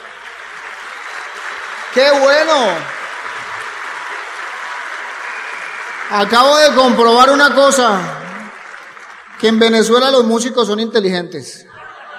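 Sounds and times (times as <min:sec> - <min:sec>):
audience applause for musicians: 0:00.0 - 0:10.5
speech: 0:02.0 - 0:03.0, 0:06.1 - 0:08.2, 0:09.4 - 0:11.7
laughter: 0:11.7 - 0:12.1.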